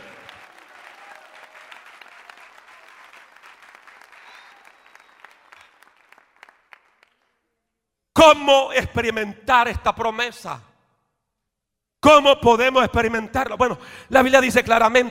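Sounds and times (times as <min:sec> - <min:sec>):
audience applauding: 0:00.0 - 0:07.4
speech: 0:08.2 - 0:10.7, 0:12.0 - 0:15.0.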